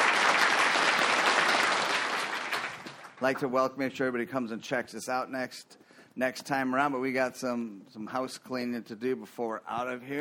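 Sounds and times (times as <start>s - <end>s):
round of applause: 0.0s - 3.4s
speech: 3.2s - 10.1s.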